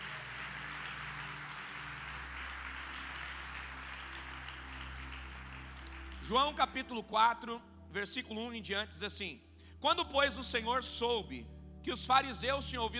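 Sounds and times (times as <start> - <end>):
audience applause: 0.0 - 6.6
low sustained musical tone: 0.0 - 12.9
speech: 6.3 - 12.9.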